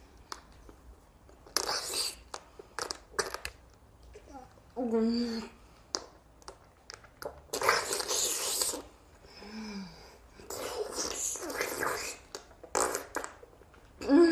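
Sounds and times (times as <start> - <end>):
married woman making oral sex sucking sounds: 1.4 - 3.6, 5.1 - 14.2.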